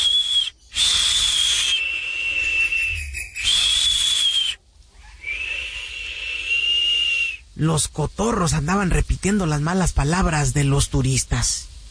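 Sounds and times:
toucans whistling from branches: 0.0 - 7.5
speech: 7.6 - 11.7.

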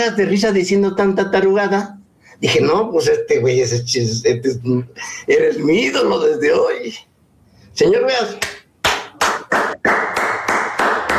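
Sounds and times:
speech: 0.0 - 7.1, 7.8 - 8.6
applause, hands clapping: 8.4 - 11.1.

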